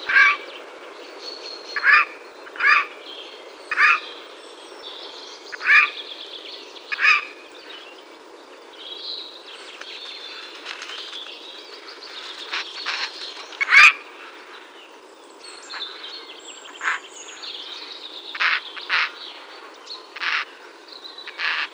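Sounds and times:
Eurasian jay grating nasal calls: 1.8s - 3.0s, 3.7s - 4.0s, 6.9s - 7.4s, 12.8s - 14.1s, 18.3s - 19.2s, 20.2s - 20.6s, 21.3s - 21.7s.

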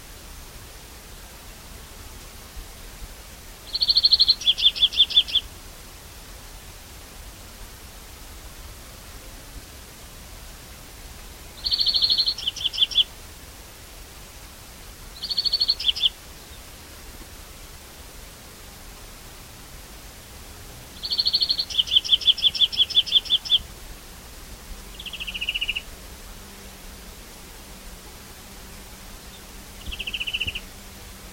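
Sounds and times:
background hiss: 0.0s - 31.3s
European greenfinch twittering trills: 11.6s - 13.1s, 15.2s - 16.1s, 21.0s - 23.6s, 29.8s - 30.6s.

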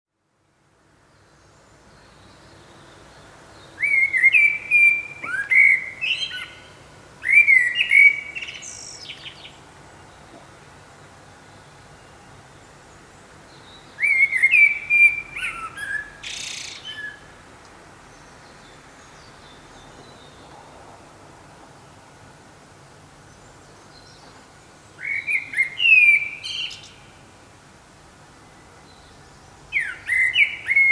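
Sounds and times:
common blackbird song: 1.0s - 17.4s, 18.0s - 20.9s, 23.2s - 27.3s, 28.2s - 30.9s.

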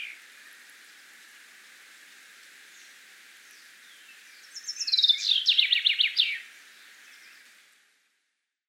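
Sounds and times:
Common chaffinch Fringilla coelebs singing: 0.0s - 0.2s, 3.5s - 7.5s.

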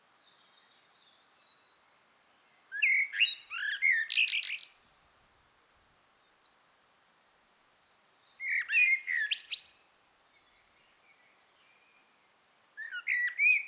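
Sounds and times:
common blackbird singing: 2.8s - 4.8s, 8.4s - 9.7s, 12.8s - 13.6s.

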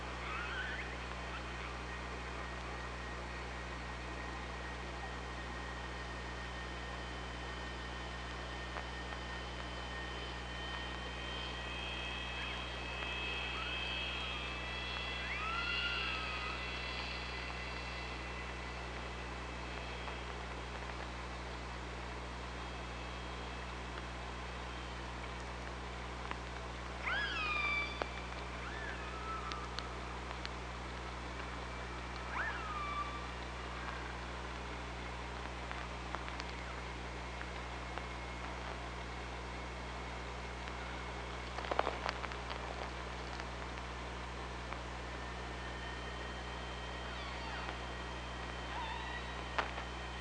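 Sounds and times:
killer whale pulsed calls: 0.0s - 2.1s, 9.2s - 20.3s, 27.0s - 30.0s, 32.2s - 34.4s, 46.7s - 49.9s
faint clicking: 0.0s - 50.2s
low hum: 0.0s - 50.2s.

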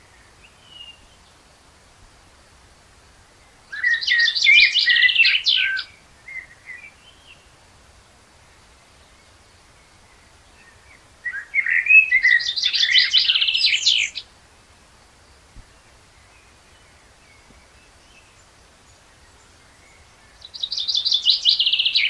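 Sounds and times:
Common blackbird singing, Turdus merula: 0.0s - 1.3s, 3.7s - 7.5s, 9.1s - 14.3s, 15.7s - 22.0s.

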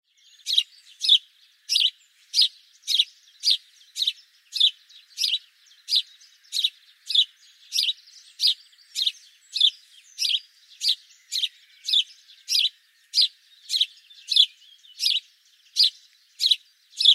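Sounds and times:
house sparrow Passer domesticus chirping: 0.1s - 17.1s.

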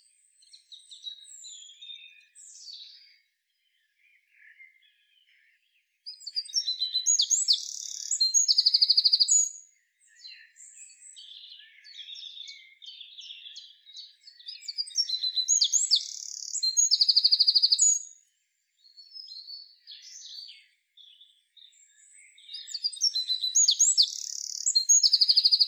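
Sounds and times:
soft high bird chirps and twitters: 0.0s - 25.6s
Eurasian wren singing: 6.2s - 9.6s, 11.2s - 18.1s, 22.4s - 25.6s.

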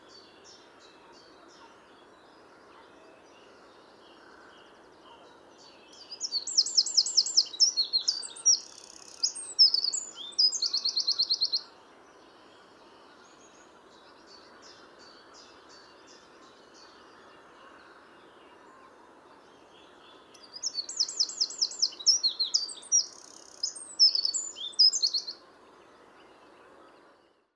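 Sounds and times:
faint background hiss: 0.0s - 27.5s
Eurasian wren song: 6.1s - 11.6s, 20.3s - 25.4s.

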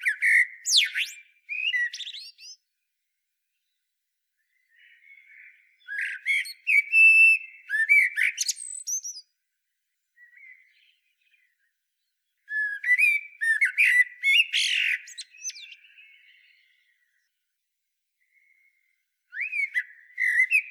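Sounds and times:
common blackbird singing: 0.0s - 2.6s, 4.4s - 9.3s, 12.3s - 17.3s, 18.3s - 20.6s.

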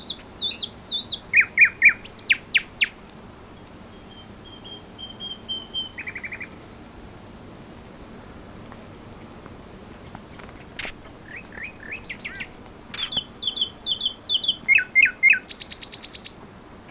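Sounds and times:
common nightingale song: 0.0s - 3.0s, 3.9s - 6.7s, 10.3s - 16.4s.

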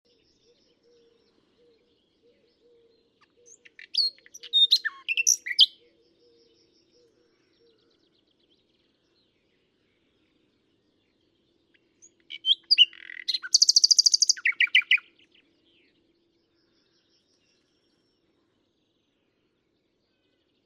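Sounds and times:
common nightingale singing: 0.1s - 8.3s, 11.7s - 15.8s.

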